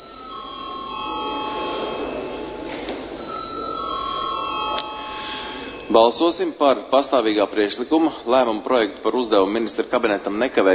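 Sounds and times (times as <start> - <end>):
parliamentary voting electric bell ringing: 0.0 - 2.6, 3.2 - 6.3
faint murmur of a hall: 0.0 - 10.7
speech: 6.0 - 10.7.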